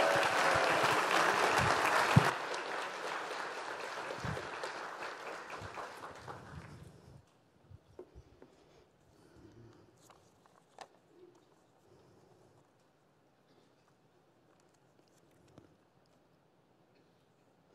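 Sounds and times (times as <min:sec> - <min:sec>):
audience applause welcoming a speaker at a church gathering: 0:00.0 - 0:07.0.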